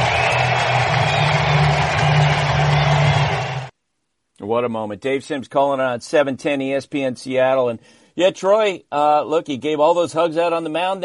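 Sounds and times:
stadium crowd roaring: 0:00.0 - 0:03.7
speech: 0:04.5 - 0:11.0.

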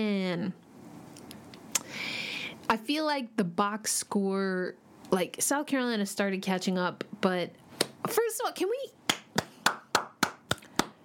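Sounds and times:
speech: 0:00.0 - 0:00.7, 0:02.7 - 0:09.0
hand clap: 0:09.1 - 0:11.0.

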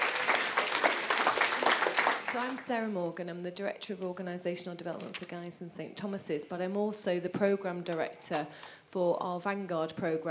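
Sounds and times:
audience cheering: 0:00.0 - 0:02.3
audience applause: 0:00.0 - 0:02.6
speech: 0:02.4 - 0:10.2.

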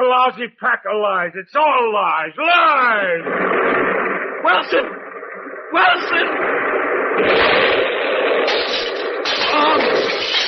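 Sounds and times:
speech: 0:00.1 - 0:05.0, 0:05.7 - 0:07.8
bomb explosion: 0:02.4 - 0:10.4.

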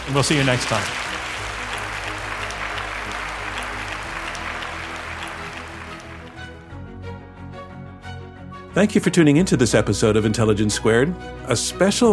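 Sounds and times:
crowd applause: 0:00.0 - 0:06.7
speech: 0:00.1 - 0:01.1, 0:08.8 - 0:12.1.

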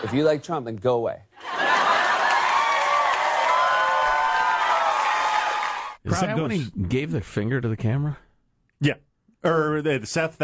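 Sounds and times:
speech: 0:00.0 - 0:01.3, 0:06.0 - 0:08.2, 0:08.8 - 0:10.4
large crowd cheering wildly: 0:01.4 - 0:06.0
scattered whoops: 0:02.1 - 0:06.0.

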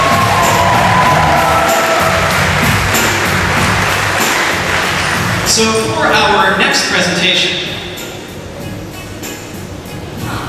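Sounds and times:
whoops and shouts: 0:00.0 - 0:02.4
crowd clapping: 0:00.0 - 0:06.0
speech: 0:05.6 - 0:07.6.

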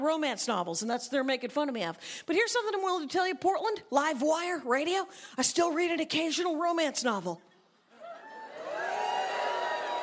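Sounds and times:
speech: 0:00.0 - 0:07.5
audience cheering: 0:08.0 - 0:10.0
audience booing: 0:08.3 - 0:10.0.

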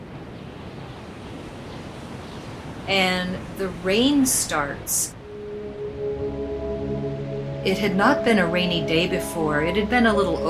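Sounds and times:
heavy loud wind: 0:00.0 - 0:10.4
speech: 0:02.9 - 0:05.2, 0:07.6 - 0:10.4.

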